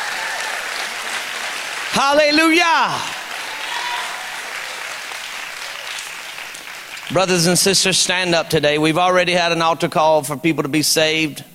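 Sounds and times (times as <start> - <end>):
audience hand clapping: 0.0 - 7.6
speech: 2.0 - 3.2, 7.1 - 11.5.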